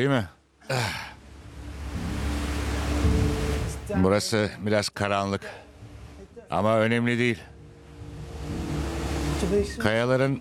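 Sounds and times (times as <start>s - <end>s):
speech: 0.0s - 1.1s, 3.9s - 5.6s, 6.5s - 7.5s, 9.4s - 10.3s
waterfall rushing water: 1.4s - 4.0s, 8.0s - 9.9s.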